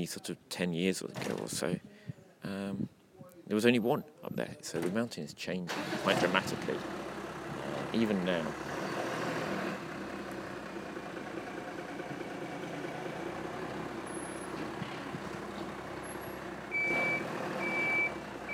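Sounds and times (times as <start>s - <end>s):
speech: 0.0s - 7.0s, 7.9s - 8.8s
lorry engine rumbling: 5.7s - 18.5s
lorry reversing warning beeps: 16.7s - 18.5s.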